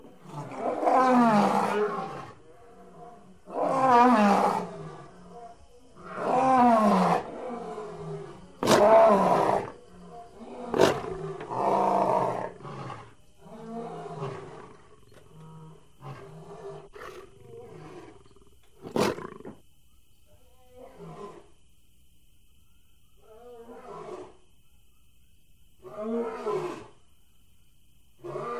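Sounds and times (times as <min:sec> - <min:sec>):
big cat snarling and roaring: 0:00.0 - 0:19.6.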